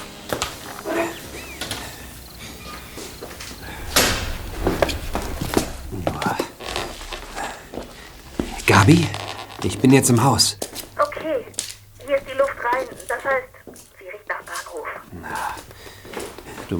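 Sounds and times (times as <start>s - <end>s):
rough noise: 0.0s - 16.7s
shuffling footsteps: 0.2s - 16.7s
back door of a run-down house opening: 3.6s - 9.7s
speech: 8.8s - 10.8s.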